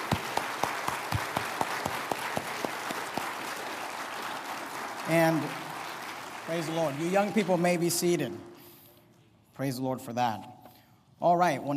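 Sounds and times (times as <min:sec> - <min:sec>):
audience applause for graduates: 0:00.0 - 0:08.2
speech: 0:05.1 - 0:05.6, 0:06.5 - 0:08.5, 0:09.6 - 0:10.5, 0:11.2 - 0:11.7.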